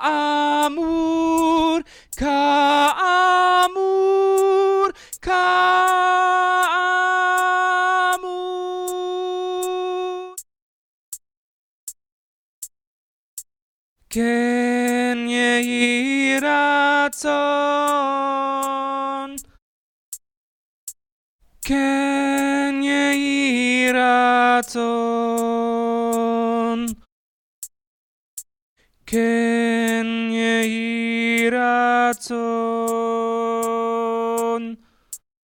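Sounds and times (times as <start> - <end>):
tenor singing a blessing: 0.0 - 10.4, 14.1 - 19.5, 21.6 - 27.1, 29.1 - 34.8.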